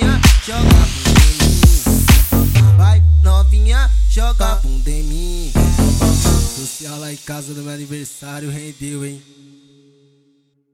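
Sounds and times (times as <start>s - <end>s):
funk beat: 0.0s - 6.8s.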